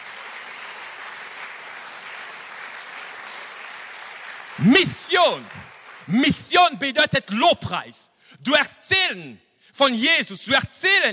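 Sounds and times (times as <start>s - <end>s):
crowd applauding: 0.0s - 6.5s
speech: 4.6s - 11.1s.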